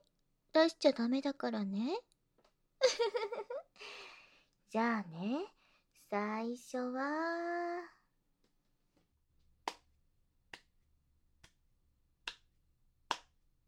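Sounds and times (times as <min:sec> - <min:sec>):
speech: 0:00.6 - 0:02.1, 0:02.9 - 0:04.1, 0:04.7 - 0:08.0
slow hand clapping: 0:09.6 - 0:09.9, 0:10.5 - 0:10.8, 0:11.4 - 0:12.5, 0:13.1 - 0:13.4.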